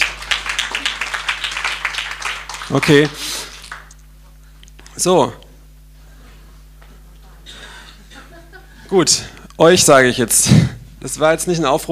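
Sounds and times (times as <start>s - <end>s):
audience applause: 0.0s - 3.9s
speech: 2.7s - 3.5s, 5.0s - 5.4s, 8.9s - 11.9s
laughter: 7.7s - 9.0s.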